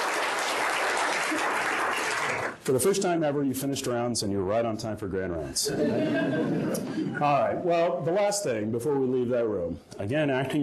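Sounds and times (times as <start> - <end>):
round of applause: 0.0 - 2.6
speech: 2.6 - 10.6
laughter: 5.6 - 7.5.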